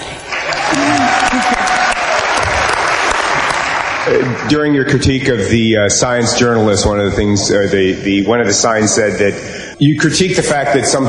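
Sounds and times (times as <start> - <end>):
audience applause: 0.0 - 4.8
speech: 4.1 - 11.0.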